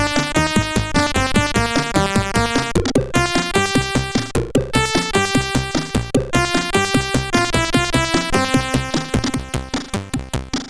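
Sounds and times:
SID chip loading tune on CSG8580R5: 0.0 - 10.6.

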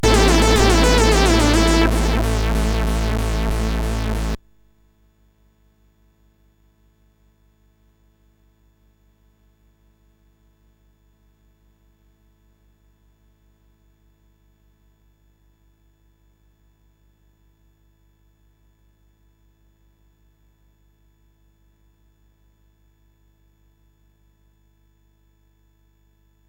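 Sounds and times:
SID chiptune music on a CSG8580R5 chip: 0.0 - 4.4.

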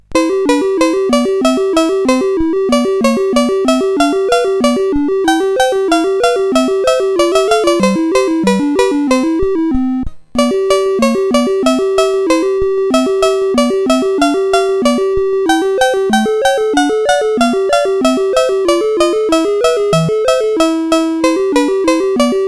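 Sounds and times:
SID CSG8580R5 chip game music: 0.0 - 22.4.

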